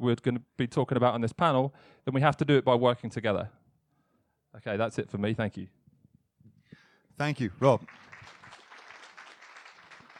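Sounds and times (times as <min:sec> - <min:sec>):
speech: 0:00.0 - 0:03.6, 0:04.5 - 0:05.8, 0:07.2 - 0:08.1
audience applause for a panel speaker: 0:07.6 - 0:10.1.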